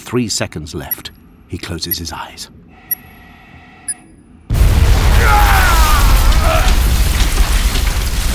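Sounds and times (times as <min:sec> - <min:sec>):
speech: 0:00.1 - 0:02.6
sharp metallic ticks: 0:00.9 - 0:01.3, 0:02.9 - 0:03.2
crackling debris: 0:04.5 - 0:08.3
grenade explosion: 0:04.5 - 0:08.3.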